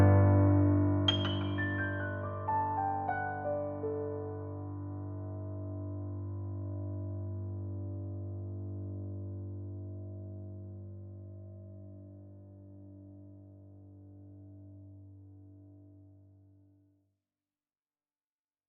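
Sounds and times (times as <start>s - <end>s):
German grand piano: 0.0s - 9.6s.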